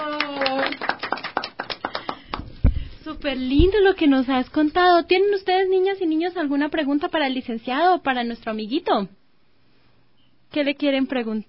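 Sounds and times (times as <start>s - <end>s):
schoolchildren clapping at a school carnival event: 0.0s - 2.5s
speech: 3.2s - 9.2s, 10.5s - 11.4s.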